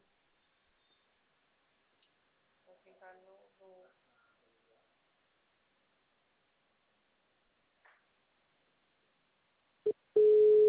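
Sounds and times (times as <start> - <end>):
speech: 2.8 - 4.0
telephone call tone: 9.9 - 10.6.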